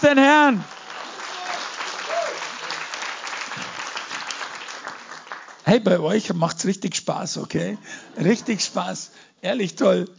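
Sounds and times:
speech: 0:00.0 - 0:00.8, 0:05.7 - 0:10.1
audience applause: 0:00.0 - 0:05.6.

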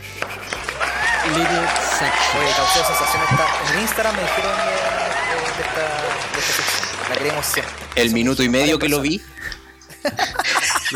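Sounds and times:
crowd applause: 0:00.0 - 0:09.2
laughter: 0:00.0 - 0:10.9
speech: 0:01.3 - 0:09.4, 0:10.0 - 0:10.9.

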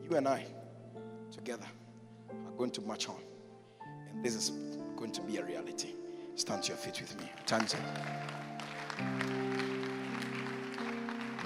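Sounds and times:
sustained organ-like chord: 0:00.0 - 0:11.4
speech: 0:00.1 - 0:00.6, 0:01.3 - 0:03.3, 0:04.1 - 0:09.3
crowd clapping: 0:07.0 - 0:11.4.

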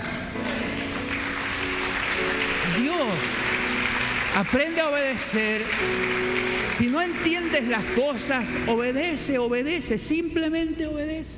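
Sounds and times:
audience applause: 0:00.4 - 0:09.0
speech: 0:02.9 - 0:03.6, 0:04.4 - 0:11.3.

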